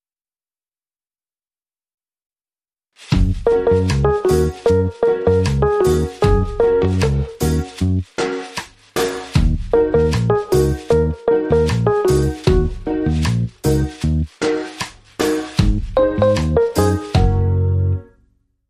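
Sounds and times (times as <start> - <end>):
reggae riddim: 3.1 - 18.0.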